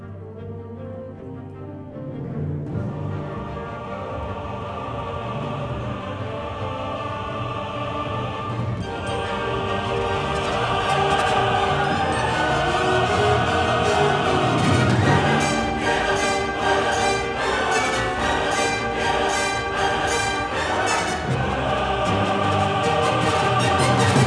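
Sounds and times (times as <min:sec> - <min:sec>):
credits music: 0:00.0 - 0:24.2.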